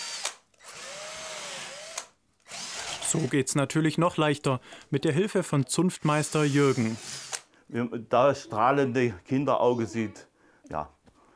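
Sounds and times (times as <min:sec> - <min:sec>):
electric drill whirring: 0:00.0 - 0:03.3, 0:06.2 - 0:07.5
speech: 0:03.1 - 0:11.0.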